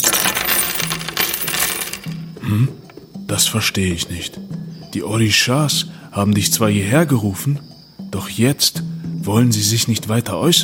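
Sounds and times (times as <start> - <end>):
shells, stones and coins tossed onto table: 0.0 - 2.4
speech: 2.5 - 10.6.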